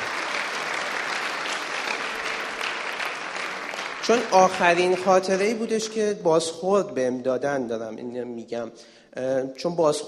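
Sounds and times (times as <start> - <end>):
standing audience applauding: 0.0 - 5.6
speech: 4.0 - 10.0.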